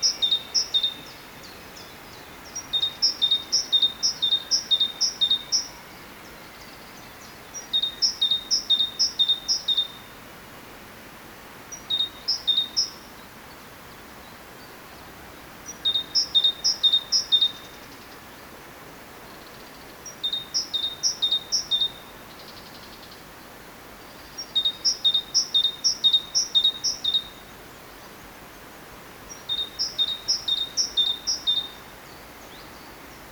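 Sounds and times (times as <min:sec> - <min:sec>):
great tit song: 0:00.0 - 0:10.1, 0:11.7 - 0:13.0, 0:15.7 - 0:18.2, 0:19.4 - 0:23.2, 0:24.1 - 0:27.5, 0:29.3 - 0:33.1
steady faint hiss: 0:00.0 - 0:33.3.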